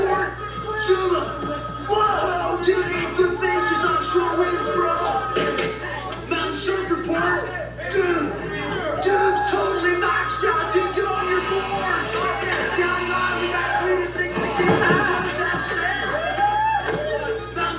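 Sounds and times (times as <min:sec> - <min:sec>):
telephone ringing: 0:00.1 - 0:17.6
voicemail greeting for a pinball map line: 0:00.3 - 0:06.5, 0:09.4 - 0:17.3.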